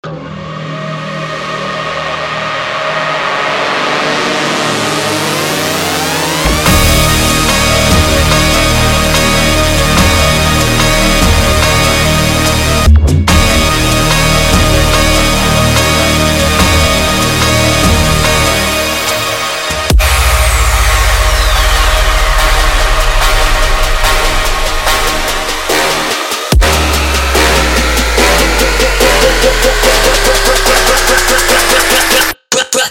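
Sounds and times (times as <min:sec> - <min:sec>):
dubstep music: 0:00.1 - 0:32.8.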